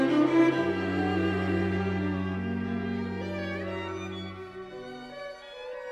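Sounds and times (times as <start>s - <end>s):
sextet playing: 0.1s - 4.6s.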